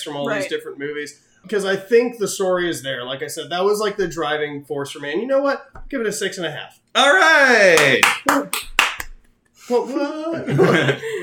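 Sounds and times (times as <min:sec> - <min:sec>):
speech: 0:00.0 - 0:08.7, 0:09.7 - 0:11.2
one person clapping hands: 0:07.7 - 0:09.2
laughter: 0:10.2 - 0:11.2.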